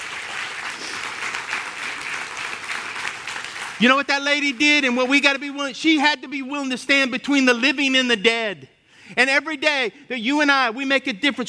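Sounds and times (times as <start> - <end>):
crowd hand clapping: 0.0 - 5.6
speech: 3.8 - 11.4.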